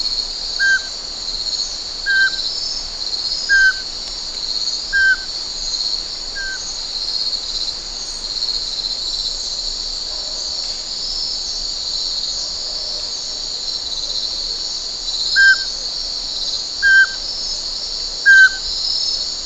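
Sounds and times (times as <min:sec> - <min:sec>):
nature sounds: 0:00.0 - 0:19.4
sych vorobinii pygmy owl: 0:15.4 - 0:15.7, 0:16.8 - 0:17.2, 0:18.3 - 0:18.6.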